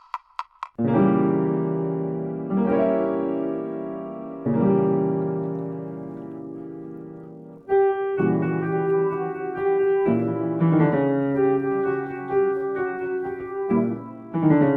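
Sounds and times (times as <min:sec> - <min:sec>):
speech therapy vocal warm-up backing track: 0:00.8 - 0:14.7.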